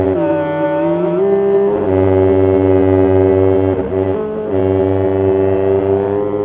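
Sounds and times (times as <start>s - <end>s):
electronic voice phenomenon: 0.2s - 6.4s.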